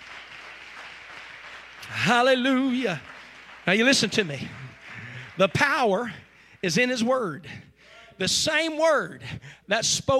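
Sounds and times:
crowd clapping: 0.0s - 6.4s
speech: 1.9s - 3.1s, 3.7s - 4.6s, 5.4s - 10.1s.

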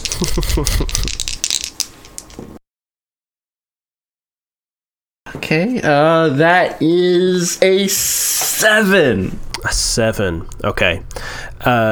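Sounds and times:
dice rattling and clattering across a surface: 0.0s - 2.3s
speech: 0.2s - 1.2s, 5.4s - 11.9s.

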